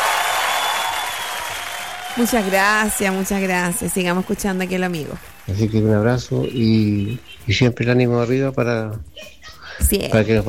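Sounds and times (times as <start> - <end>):
audience applause and ovation: 0.0 - 7.6
speech: 2.2 - 10.4.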